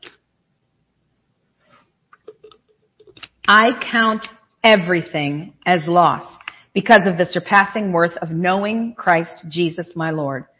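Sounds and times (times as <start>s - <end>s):
sipping a drink: 2.2s - 3.4s
speech: 3.5s - 10.5s.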